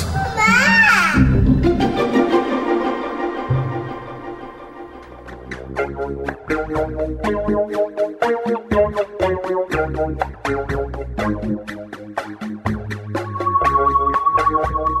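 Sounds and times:
child crying loudly: 0.2s - 1.3s
music with sustained tones: 1.2s - 14.9s.

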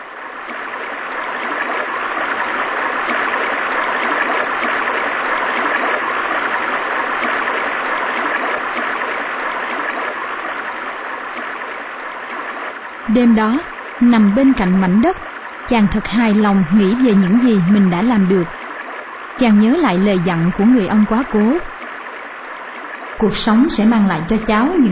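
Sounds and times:
small stream flowing: 0.0s - 24.8s
speech: 13.2s - 18.6s, 19.4s - 21.7s, 23.2s - 24.8s.

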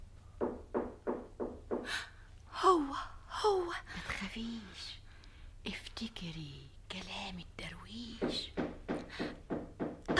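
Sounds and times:
knocking on a door: 0.4s - 2.0s, 8.1s - 10.1s
speech: 2.7s - 5.0s, 5.6s - 9.4s.

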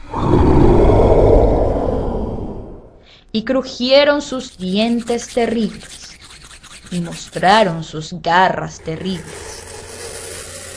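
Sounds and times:
chorus of monstrous roars: 0.0s - 2.8s, 8.8s - 10.7s
speech: 3.4s - 6.0s, 6.9s - 9.5s.

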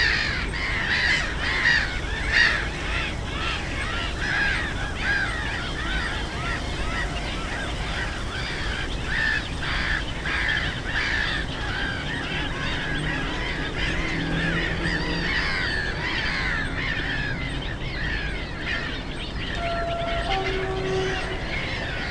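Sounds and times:
Black-headed gulls screeching in a colony: 0.0s - 22.0s
low rumble of traffic: 0.0s - 22.0s.

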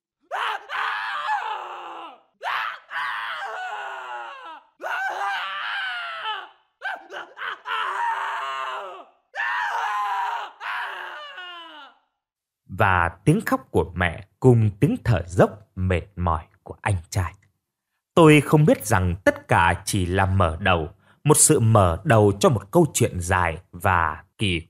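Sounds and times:
man screaming and wailing in pain: 0.3s - 12.1s
speech: 12.8s - 17.4s, 18.2s - 24.6s.

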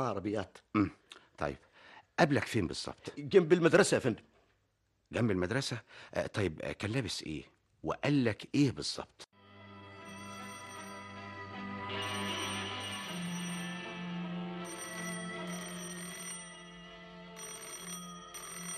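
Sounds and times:
speech: 0.0s - 4.3s, 5.1s - 9.3s
telephone ringing: 9.8s - 18.7s.

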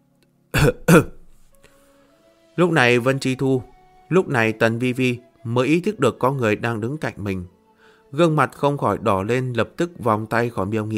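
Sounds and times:
person imitating forced throat-clearing coughs: 0.5s - 1.3s
speech: 0.6s - 1.2s, 2.6s - 10.9s.

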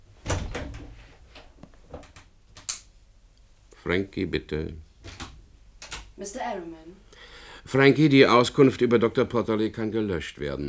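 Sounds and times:
door opening and closing: 0.1s - 2.3s, 5.0s - 6.1s
speech: 3.9s - 4.9s, 6.2s - 10.6s.

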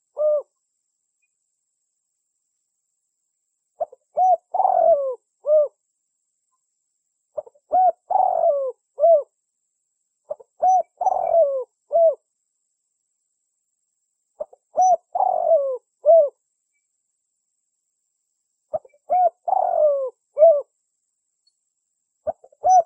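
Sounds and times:
Spotted Dove cooing as a lure call: 0.0s - 0.5s, 3.8s - 5.8s, 7.4s - 9.3s, 10.3s - 12.2s, 14.4s - 16.4s, 18.7s - 20.7s, 22.2s - 22.8s.

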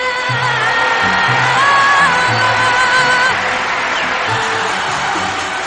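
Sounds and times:
crowd cheering and whooping: 0.2s - 5.6s.

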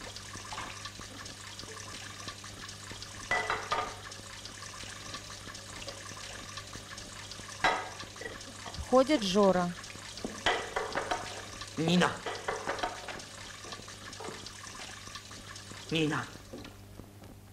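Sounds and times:
running water from a tap at a restaurant sink: 0.0s - 16.9s
woman washing plates at a sink in a restaurant dishwashing room: 3.2s - 4.1s, 7.4s - 8.8s, 10.0s - 15.0s
speech: 8.9s - 9.8s, 11.8s - 12.3s, 15.9s - 16.4s.

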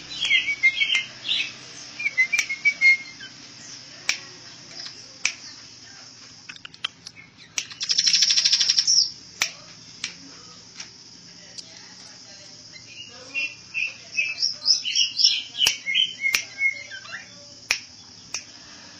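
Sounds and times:
bird singing trill, chirps and whistles: 0.0s - 3.9s, 6.6s - 9.2s, 12.7s - 18.3s.

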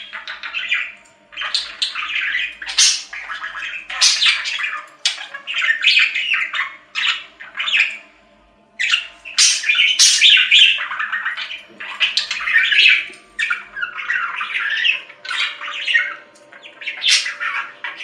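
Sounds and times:
budgerigar chatter: 0.0s - 8.2s, 8.8s - 18.0s
faint hum: 0.0s - 18.0s.

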